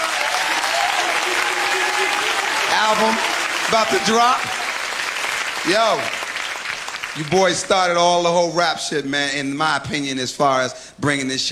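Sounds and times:
faint cheers and whoops: 0.0s - 4.9s
crowd applauding: 0.0s - 8.0s
speech: 2.8s - 4.5s, 5.6s - 6.2s, 7.2s - 11.5s.

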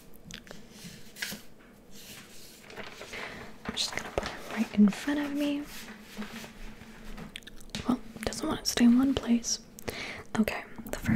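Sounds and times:
paper being picked up and handled: 0.8s - 7.8s
speech: 4.6s - 6.6s, 8.5s - 9.7s, 10.4s - 11.1s.

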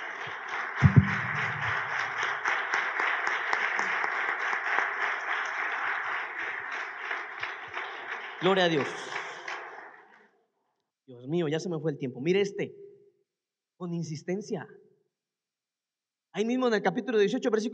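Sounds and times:
audience applause: 0.0s - 10.0s
low thump: 0.8s - 2.2s
speech: 8.4s - 9.2s, 11.3s - 12.8s, 13.8s - 14.8s, 16.4s - 17.7s.

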